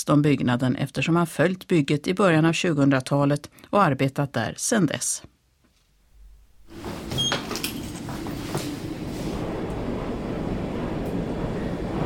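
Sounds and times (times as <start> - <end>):
speech: 0.0 - 5.3
high-speed elevator ascending: 6.6 - 12.0.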